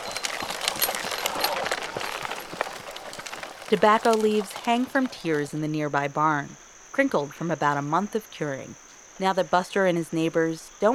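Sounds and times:
harnessed workhorse trotting in a circle powering a sorghum cane mill: 0.0s - 5.8s
constant noise: 0.0s - 10.9s
speech: 3.7s - 10.9s.

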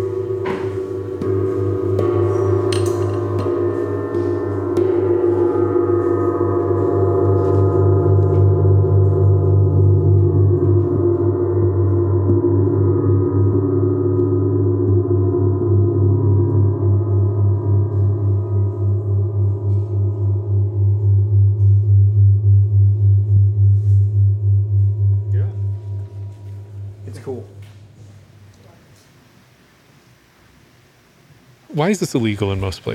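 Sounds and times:
gong being struck: 0.0s - 28.5s
speech: 31.8s - 32.9s.

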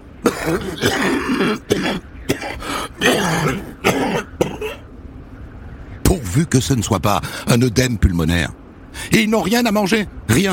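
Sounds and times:
man coughing: 0.2s - 4.8s
speech: 0.4s - 4.8s, 6.1s - 10.5s.

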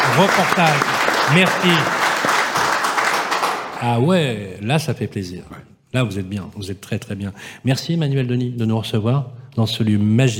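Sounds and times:
audience applause: 0.0s - 4.0s
speech: 0.2s - 2.0s, 3.8s - 10.3s.

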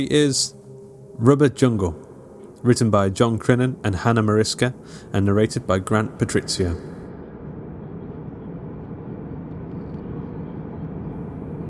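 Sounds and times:
speech: 0.0s - 0.6s, 1.2s - 2.0s, 2.6s - 7.0s
airplane cabin drone in flight: 0.0s - 11.6s.

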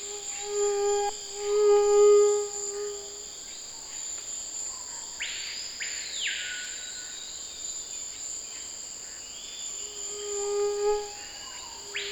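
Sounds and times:
mosquito whining: 0.0s - 3.2s, 10.1s - 12.0s
faint high insect tone: 0.0s - 12.0s.

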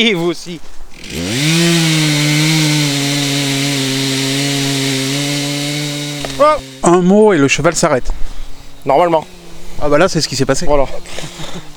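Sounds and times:
speech: 0.0s - 2.2s, 6.4s - 11.6s
chainsaw cutting wood: 0.9s - 7.7s, 10.7s - 11.7s.

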